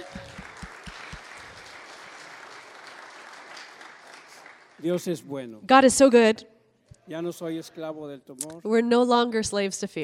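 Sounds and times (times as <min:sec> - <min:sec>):
church congregation applauding during a bilingual service: 0:00.0 - 0:05.5
speech: 0:04.8 - 0:06.5, 0:07.1 - 0:10.0.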